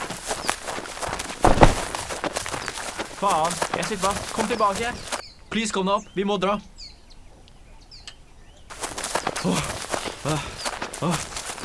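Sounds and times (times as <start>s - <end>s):
running footsteps: 0.0s - 5.2s, 8.7s - 11.6s
speech: 3.2s - 6.7s, 11.0s - 11.6s.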